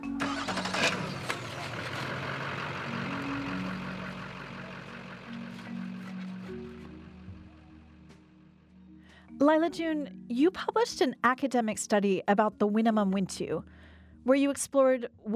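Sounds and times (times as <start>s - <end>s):
trucks starting up and driving away: 0.0s - 8.6s
speech: 9.4s - 15.3s.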